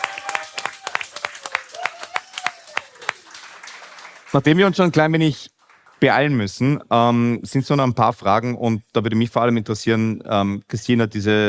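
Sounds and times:
scattered audience applause honoring an ice hockey club official: 0:00.0 - 0:06.2
speech: 0:04.3 - 0:11.4.

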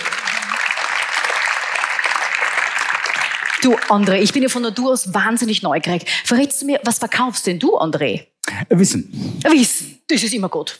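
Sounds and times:
audience applause: 0:00.0 - 0:04.5
speech: 0:03.6 - 0:10.7.

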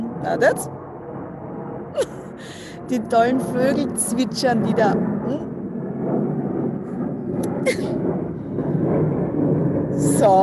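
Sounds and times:
airplane flying overhead: 0:00.0 - 0:10.4
speech: 0:00.2 - 0:00.8, 0:02.0 - 0:05.5, 0:07.6 - 0:08.0, 0:10.0 - 0:10.4.

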